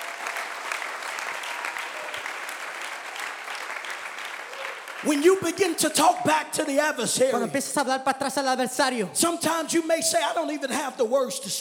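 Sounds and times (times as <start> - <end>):
audience clapping: 0.0 - 7.5
speech: 5.0 - 11.6.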